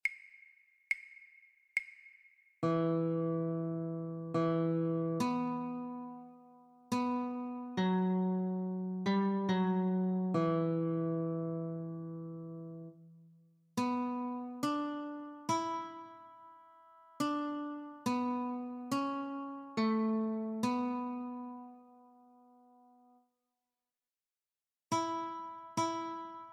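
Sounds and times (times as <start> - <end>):
guitar notes: 2.6 - 13.2, 13.8 - 16.6, 17.2 - 22.9, 24.9 - 26.5.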